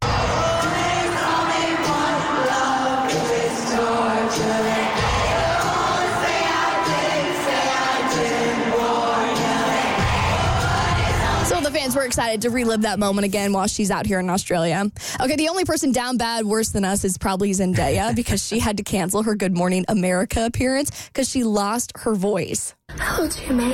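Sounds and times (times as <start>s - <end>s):
stadium concert crowd in Sydney roaring and singing: 0.0s - 13.5s
speech: 12.1s - 23.7s.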